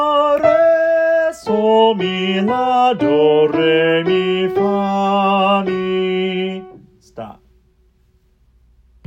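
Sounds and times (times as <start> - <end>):
second soprano singing solfege slowly: 0.0 - 7.0.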